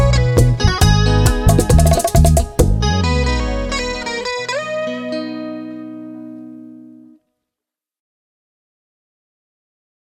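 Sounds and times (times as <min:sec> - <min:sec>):
bachata music: 0:00.0 - 0:06.2.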